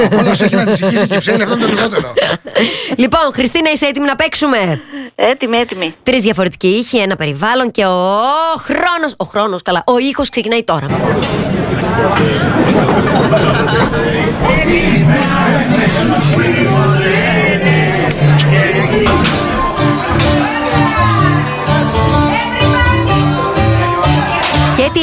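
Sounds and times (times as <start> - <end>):
laughter: 0.0 - 3.0, 10.9 - 21.2
speech: 0.0 - 17.3
loud overlapping crowd chatter in a busy taverna: 10.9 - 25.0.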